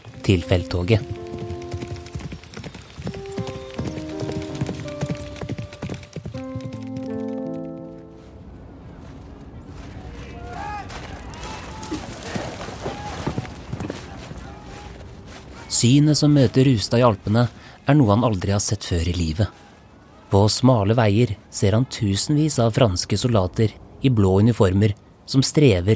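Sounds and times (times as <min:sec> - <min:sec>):
galloping horse hooves clip-clopping as a rider races: 0:00.0 - 0:08.3, 0:10.2 - 0:17.6
music: 0:00.0 - 0:08.5
speech: 0:00.3 - 0:01.2, 0:15.8 - 0:19.6, 0:20.3 - 0:25.9.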